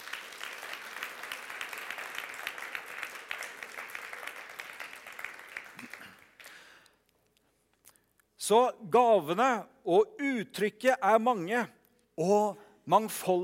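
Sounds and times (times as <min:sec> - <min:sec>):
audience applause: 0:00.0 - 0:06.8
speech: 0:08.5 - 0:13.4.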